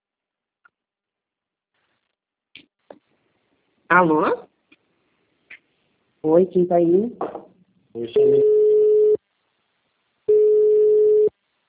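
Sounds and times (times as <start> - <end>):
speech: 3.9 - 4.5, 6.2 - 7.2, 8.0 - 8.4
telephone busy tone after a dropped call: 8.2 - 9.2, 10.3 - 11.3.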